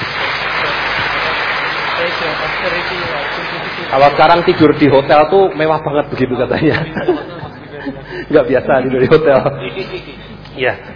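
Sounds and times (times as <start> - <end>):
audience applause for Buddhist monk Ajahn Brahm at a talk: 0.0 - 6.2
speech: 2.2 - 10.9
laughter: 6.4 - 10.5.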